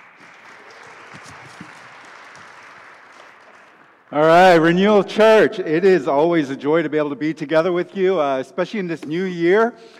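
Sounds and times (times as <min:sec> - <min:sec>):
church congregation applauding to welcome the pastor: 0:00.0 - 0:05.0
speech: 0:04.1 - 0:09.9.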